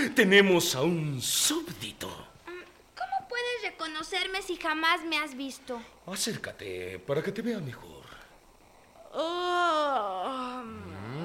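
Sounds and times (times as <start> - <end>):
speech: 0.1 - 2.2, 4.0 - 8.0, 9.1 - 11.2
long voiced yawn: 9.0 - 11.2.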